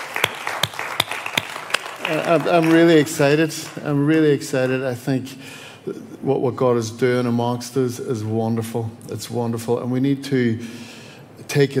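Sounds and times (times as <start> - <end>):
audience clapping: 0.0 - 4.8
speech: 2.1 - 10.9, 11.6 - 11.7.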